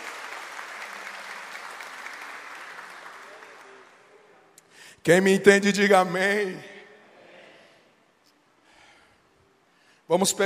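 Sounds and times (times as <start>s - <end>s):
audience applause: 0.0s - 4.0s
speech: 5.0s - 6.7s, 10.1s - 10.4s.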